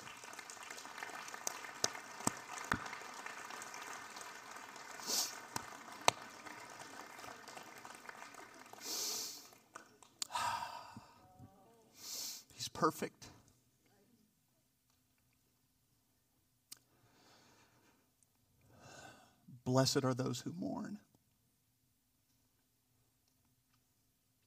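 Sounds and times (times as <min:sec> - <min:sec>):
audience applause: 0:00.0 - 0:11.0
speech: 0:12.8 - 0:13.3, 0:19.7 - 0:21.1.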